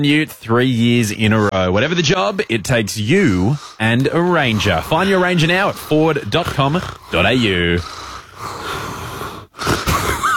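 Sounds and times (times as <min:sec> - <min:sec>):
speech: 0:00.0 - 0:08.6
heavy wheezy breathing: 0:02.1 - 0:10.3.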